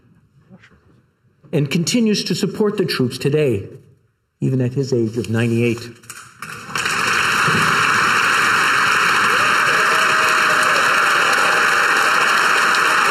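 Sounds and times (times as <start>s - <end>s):
speech: 1.5s - 3.8s, 4.4s - 6.2s, 7.4s - 7.8s
Canadian Parliament standing ovation applause: 6.4s - 13.0s.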